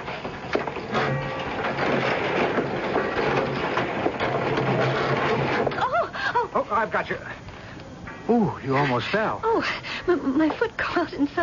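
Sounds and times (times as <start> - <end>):
old wooden boathouse door scraping open: 0.5 - 5.8
speech: 6.8 - 7.4, 8.3 - 11.4.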